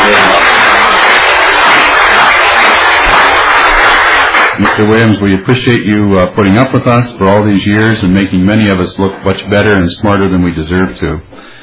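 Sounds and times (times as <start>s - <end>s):
crowd applauding: 0.0s - 5.2s
speech: 4.8s - 11.6s.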